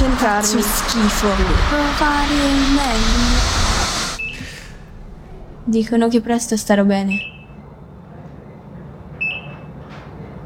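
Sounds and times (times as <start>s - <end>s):
speech: 0.2s - 3.6s, 5.7s - 7.3s
hospital monitor beep: 4.2s - 4.6s, 7.1s - 7.6s, 9.2s - 9.7s
low hiss: 4.2s - 9.4s.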